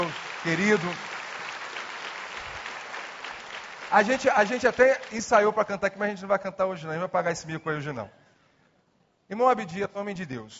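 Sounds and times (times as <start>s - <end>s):
audience applause: 0.0s - 5.4s
speech: 0.4s - 1.1s, 3.9s - 8.2s, 9.3s - 10.5s.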